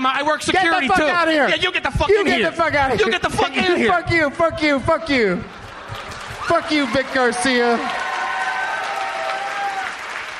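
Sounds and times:
speech: 0:00.0 - 0:05.6, 0:06.5 - 0:08.0
laughter: 0:02.1 - 0:04.2, 0:05.2 - 0:07.8
audience applause: 0:05.5 - 0:10.3.

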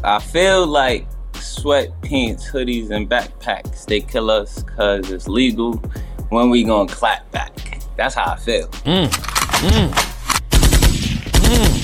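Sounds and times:
speech: 0:00.0 - 0:10.1
machine gun fire sound effect: 0:09.2 - 0:11.8.

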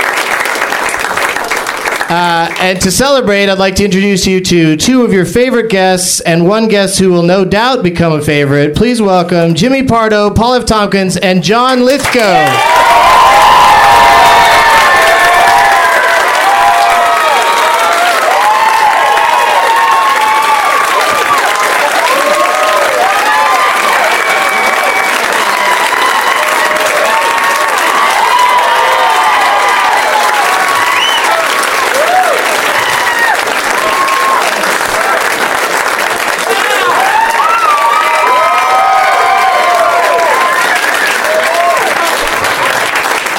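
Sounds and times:
studio audience applause: 0:00.0 - 0:02.8, 0:12.0 - 0:43.3
speech: 0:02.1 - 0:13.2
studio audience whoops and shouts: 0:12.4 - 0:21.4, 0:22.0 - 0:34.6, 0:36.5 - 0:42.1.

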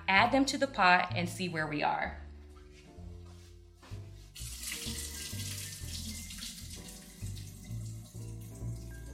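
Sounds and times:
low steady music: 0:00.0 - 0:09.1
speech: 0:00.1 - 0:02.2
water gushing into a sink as potatoes are strained through a colander: 0:04.4 - 0:09.1.

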